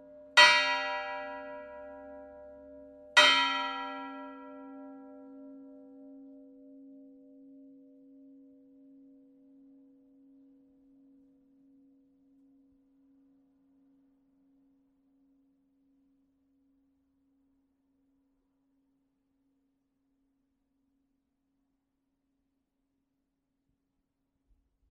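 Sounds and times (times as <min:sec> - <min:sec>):
church bells ringing: 0:00.0 - 0:06.3.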